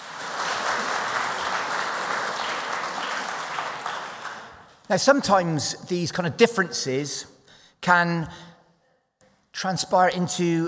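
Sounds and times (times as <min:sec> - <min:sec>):
audience applause: 0:00.0 - 0:04.8
speech: 0:04.9 - 0:08.5, 0:09.6 - 0:10.6.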